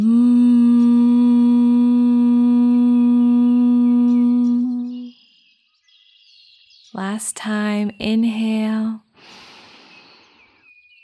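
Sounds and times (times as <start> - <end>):
person humming on exhale in bee breath: 0.0 - 5.1
speech: 7.2 - 9.4.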